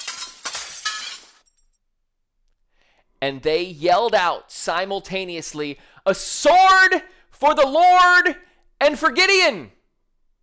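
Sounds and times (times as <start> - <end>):
clay jars and glass shattering: 0.0 - 1.8
tinkling debris: 0.0 - 1.8
speech: 3.2 - 9.8.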